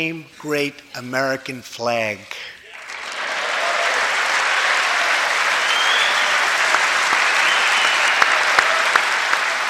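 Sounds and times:
speech: 0.0s - 2.6s
loud clapping in front of a microphone: 2.7s - 9.6s.

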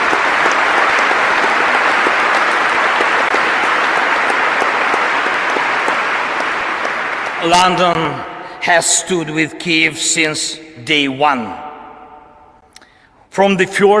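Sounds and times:
applause: 0.0s - 8.3s
speech: 7.4s - 11.7s, 13.4s - 13.9s.

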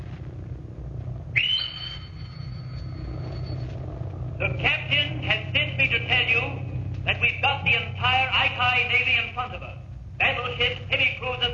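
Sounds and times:
constant low rumble: 0.0s - 11.5s
petty officer's shrill pipe call over a ship's loudspeaker: 1.4s - 3.4s
speech: 6.2s - 11.5s.

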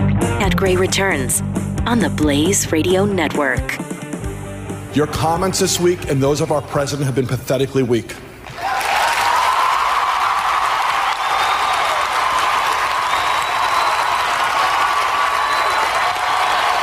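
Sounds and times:
speech: 0.5s - 3.9s, 4.9s - 8.3s
thunderous applause from a large crowd in movie clip: 8.6s - 16.8s.

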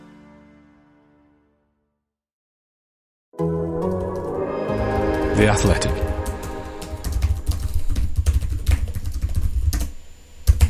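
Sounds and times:
typing on a computer keyboard: 3.8s - 10.6s
speech: 5.4s - 6.0s.

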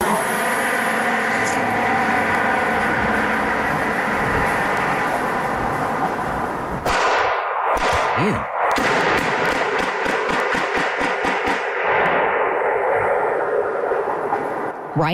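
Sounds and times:
steady rushing roar: 0.0s - 15.1s
gunshots on a doorbell camera recording: 6.8s - 12.9s.

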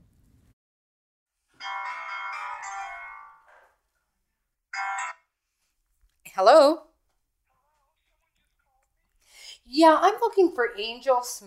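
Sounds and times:
phone ringing on an outgoing call: 1.6s - 3.7s, 4.7s - 5.4s
speech: 6.4s - 6.8s, 9.7s - 11.4s.

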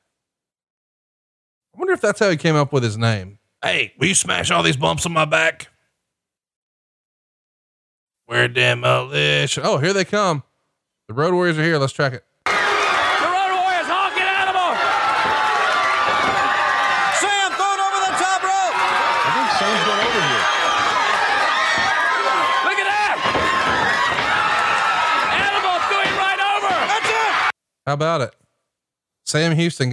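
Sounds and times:
speech: 1.8s - 5.7s, 8.3s - 10.5s, 11.1s - 12.3s, 27.9s - 28.4s, 29.3s - 29.9s
crowd roaring with whoops and shouting: 12.5s - 27.5s
scattered clapping: 12.5s - 27.5s.

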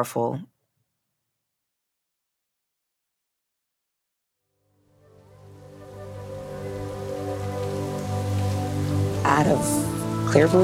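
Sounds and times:
speech: 0.0s - 0.5s, 9.3s - 10.6s
sudden heavy rain downpour: 5.4s - 10.6s.

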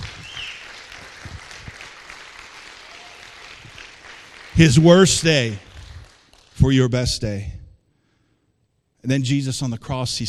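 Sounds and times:
audience applause: 0.0s - 6.6s
speech: 4.6s - 5.7s, 6.6s - 7.6s, 9.0s - 10.2s.

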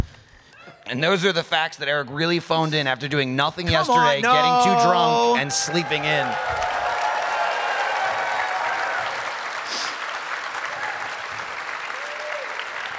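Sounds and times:
speech: 0.9s - 6.8s
live audience cheering and applauding: 3.9s - 12.9s.

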